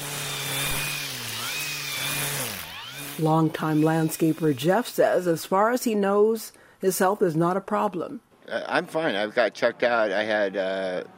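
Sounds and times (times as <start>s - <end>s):
small gas engine from landscaping equipment droning: 0.0s - 4.6s
speech: 3.2s - 11.1s.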